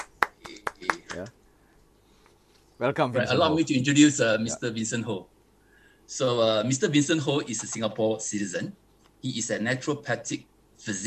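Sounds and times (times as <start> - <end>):
welcoming applause: 0.0 - 1.3
speech: 1.2 - 1.4, 2.8 - 5.4, 6.1 - 11.0.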